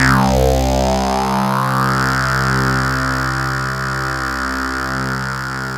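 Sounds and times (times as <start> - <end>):
Kurzweil K2000 synthesizer buzz: 0.0 - 5.6.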